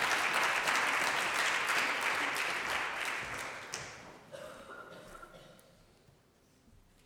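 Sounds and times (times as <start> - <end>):
crowd applauding: 0.0 - 4.0.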